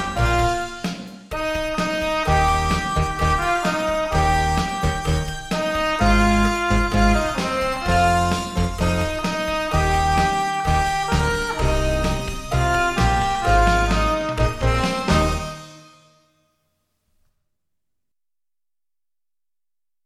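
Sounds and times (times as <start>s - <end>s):
gospel rock music: 0.0s - 15.8s.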